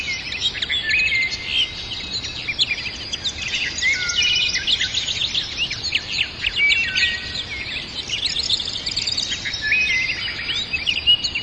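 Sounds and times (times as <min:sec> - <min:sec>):
birds singing trills and warbles in a forest: 0:00.0 - 0:11.4.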